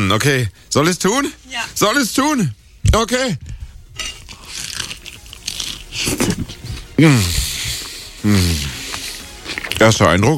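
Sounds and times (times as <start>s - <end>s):
speech: 0.1s - 4.2s, 6.0s - 7.5s, 8.2s - 8.7s, 9.8s - 10.3s
biting and chewing messy food eaten by hand: 4.0s - 10.0s.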